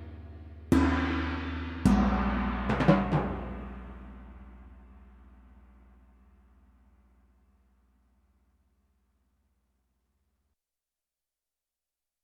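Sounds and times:
gong on Yamaha TX16W sampler: 0.0s - 5.6s
timpani on Yamaha TX16W sampler: 0.0s - 6.0s.

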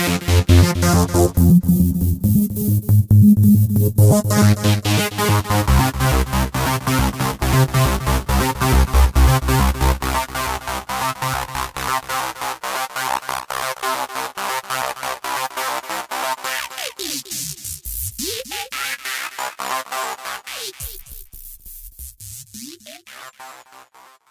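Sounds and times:
Korg microKORG synthesizer with unison HPF and LPF: 0.0s - 17.4s.

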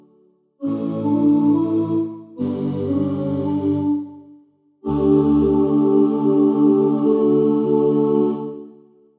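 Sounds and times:
pop vocal oohs from a sample synthesizer: 0.6s - 3.9s, 4.8s - 8.7s.

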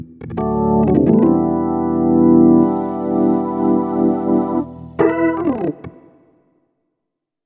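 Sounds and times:
Roland SRX-07 Ultimate Keys keyboard B note: 0.4s - 6.3s.

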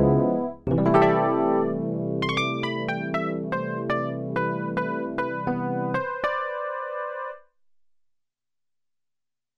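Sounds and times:
electric piano: 0.0s - 7.4s.

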